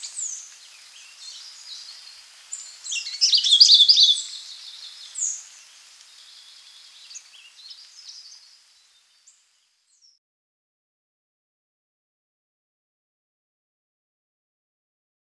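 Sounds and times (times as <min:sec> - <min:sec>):
Sulawesi leaf warbler singing: 0:00.0 - 0:10.2.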